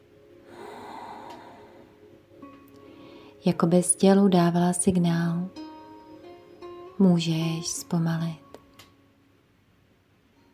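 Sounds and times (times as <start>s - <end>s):
breathing in through the nose and exhaling during a guided breathing exercise: 0.4s - 3.4s
speech: 3.4s - 5.6s, 7.0s - 8.4s.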